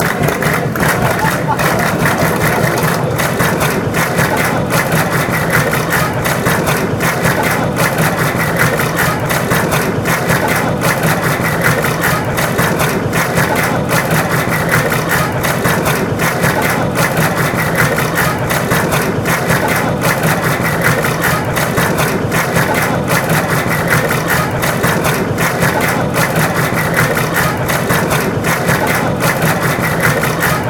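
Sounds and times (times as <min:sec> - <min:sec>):
laughter: 0:00.0 - 0:30.6
people chanting: 0:00.0 - 0:30.6
people clapping: 0:00.0 - 0:30.6.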